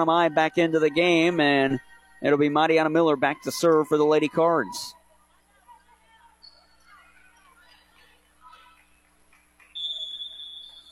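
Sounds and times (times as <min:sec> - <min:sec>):
speech: 0:00.0 - 0:05.0
referee's whistle before volleyball serve: 0:09.8 - 0:10.9.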